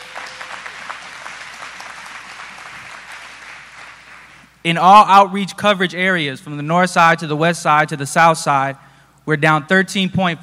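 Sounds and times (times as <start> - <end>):
audience applause: 0.0 - 4.4
speech: 4.6 - 10.4.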